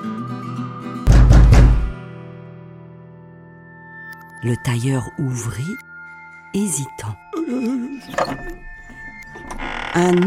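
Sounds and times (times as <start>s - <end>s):
knocks on a poor cottage door: 1.1s - 2.0s
speech: 4.4s - 5.9s, 6.5s - 8.7s, 9.3s - 10.2s.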